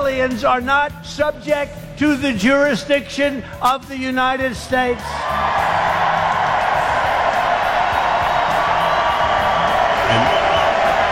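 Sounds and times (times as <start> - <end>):
speech: 0.2 - 6.0
large rally crowd cheering: 5.0 - 11.1.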